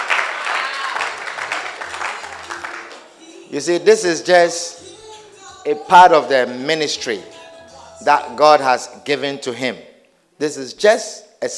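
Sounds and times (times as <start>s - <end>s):
audience clapping hands: 0.0s - 3.1s
speech: 3.5s - 4.8s, 5.6s - 7.4s, 8.0s - 11.5s.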